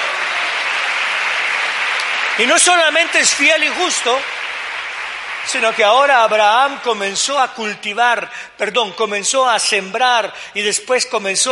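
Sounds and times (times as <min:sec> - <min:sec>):
audience applauding loudly: 0:00.0 - 0:07.3
speech: 0:02.4 - 0:04.4, 0:05.5 - 0:11.5.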